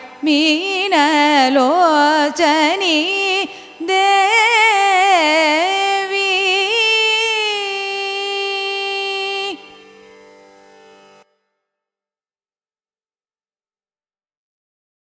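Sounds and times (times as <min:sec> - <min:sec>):
Carnatic raga music: 0:00.0 - 0:11.6.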